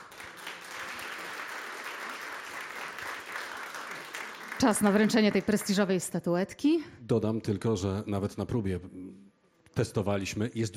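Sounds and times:
applause at a Polish award ceremony honoring a travel author: 0:00.0 - 0:05.7
speech: 0:04.6 - 0:10.7.

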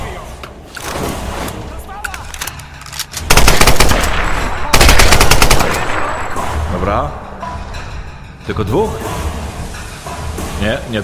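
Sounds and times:
video game automatic gunfire aimed at the player: 0:03.3 - 0:06.1
speech: 0:06.9 - 0:07.2, 0:08.5 - 0:09.1, 0:10.6 - 0:11.0.

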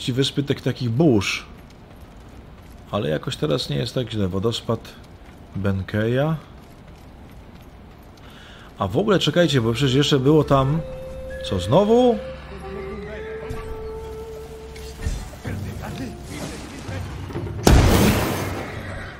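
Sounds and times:
speech: 0:00.0 - 0:01.6, 0:02.9 - 0:06.5, 0:08.8 - 0:12.3
video game powder bomb explosion: 0:17.6 - 0:18.9.

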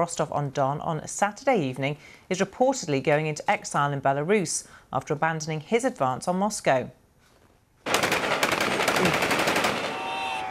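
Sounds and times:
speech: 0:00.0 - 0:07.0
guns fired into the sky: 0:07.8 - 0:10.4
watching public cheering: 0:09.0 - 0:10.4.

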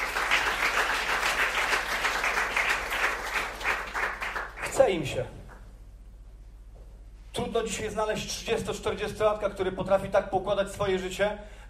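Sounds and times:
audience applause: 0:00.0 - 0:04.8
speech: 0:04.8 - 0:05.4, 0:07.4 - 0:11.6.

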